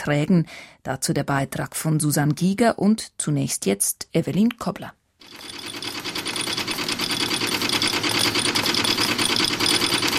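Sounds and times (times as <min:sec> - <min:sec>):
speech: 0:00.0 - 0:05.6
coin minting machinery clattering in a production hall: 0:05.2 - 0:10.1.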